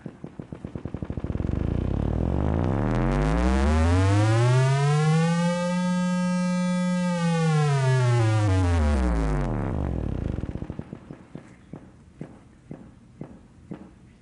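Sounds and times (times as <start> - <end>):
rhythmic pulses sped up into a pitch: 0.5 - 11.5.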